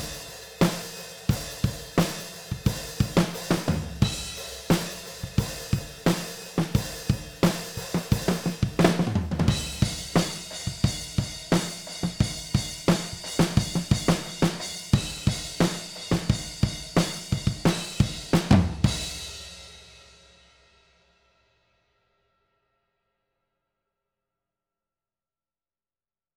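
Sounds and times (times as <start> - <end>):
alternative rock drums: 0.0 - 20.0.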